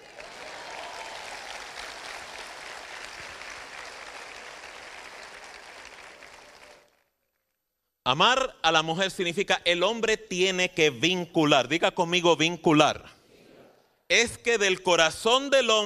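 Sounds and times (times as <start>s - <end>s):
audience applause: 0.0s - 7.1s
speech: 8.1s - 13.2s, 14.1s - 15.8s.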